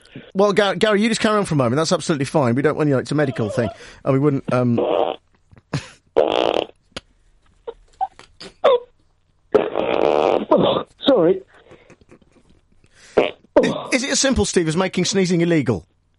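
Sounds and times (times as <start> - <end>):
speech: 0.4 - 5.2, 14.2 - 15.9
man blowing his nose loudly: 6.2 - 6.7, 9.6 - 10.9, 13.0 - 13.9.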